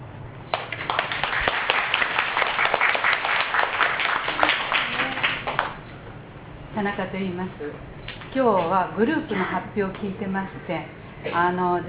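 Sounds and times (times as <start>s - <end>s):
audience applause: 0.5s - 5.8s
speech: 6.8s - 11.8s.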